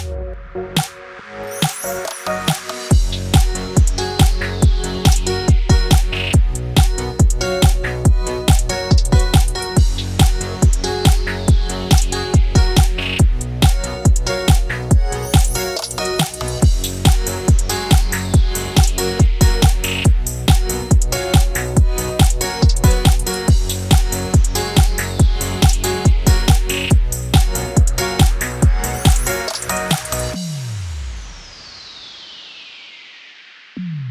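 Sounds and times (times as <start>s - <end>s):
Christmas music in F-sharp major at 140 BPM: 0.2s - 30.6s.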